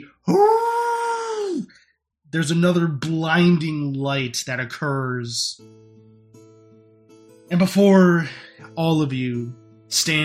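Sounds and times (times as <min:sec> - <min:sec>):
speech: 0:00.0 - 0:00.6, 0:02.3 - 0:05.8, 0:07.5 - 0:10.2
deep creature howl: 0:00.2 - 0:01.7.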